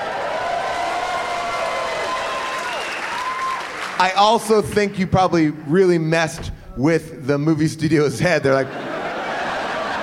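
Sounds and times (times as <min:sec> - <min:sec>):
whistles and cheers: 0:00.0 - 0:04.0
audience applause: 0:00.0 - 0:04.4
speech: 0:04.0 - 0:08.9
laughter: 0:08.2 - 0:10.0.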